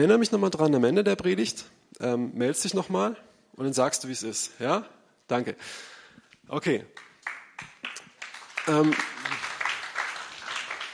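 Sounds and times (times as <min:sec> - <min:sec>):
speech: 0:00.0 - 0:07.7, 0:08.7 - 0:09.2
audience applause: 0:07.0 - 0:10.9.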